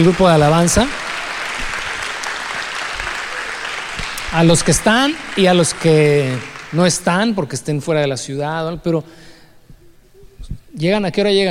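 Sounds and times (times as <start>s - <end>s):
speech: 0.0s - 1.0s, 4.3s - 9.2s, 10.8s - 11.4s
audience applauding: 0.0s - 7.9s.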